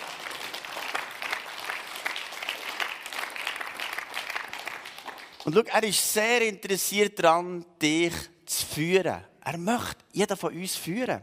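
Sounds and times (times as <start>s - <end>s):
audience applause: 0.0s - 5.6s
speech: 5.5s - 11.2s.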